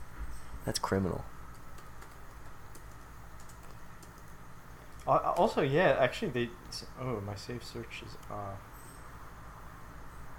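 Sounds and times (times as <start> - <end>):
speech: 0.7 - 1.4, 5.0 - 8.7
typing on a computer keyboard: 1.5 - 4.4.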